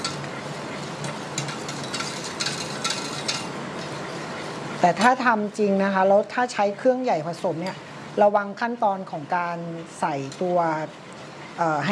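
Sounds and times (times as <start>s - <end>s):
mixture being stirred by hand: 0.0s - 5.2s
speech: 4.8s - 11.9s.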